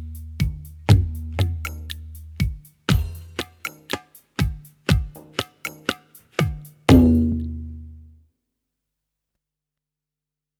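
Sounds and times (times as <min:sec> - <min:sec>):
tabla ga ge and ke strokes: 0:00.0 - 0:08.1.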